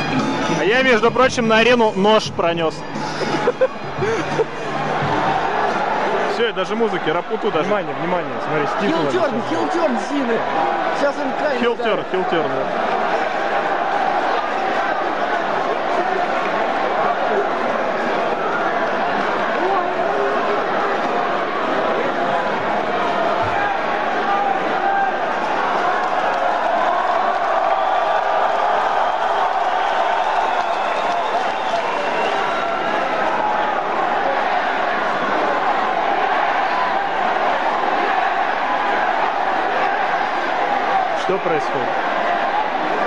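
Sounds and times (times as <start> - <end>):
large arena crowd shouting and roaring: 0.0 - 43.0
speech: 0.7 - 5.1, 6.4 - 13.0
laughter: 2.8 - 5.4, 11.6 - 12.8.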